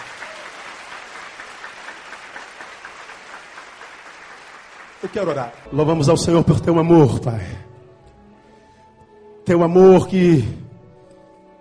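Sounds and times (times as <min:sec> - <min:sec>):
audience applause: 0:00.0 - 0:05.7
speech: 0:05.0 - 0:07.7, 0:09.5 - 0:10.6.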